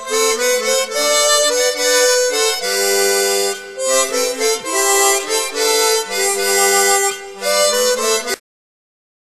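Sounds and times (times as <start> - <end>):
chromatic harmonica: 0.0 - 8.4.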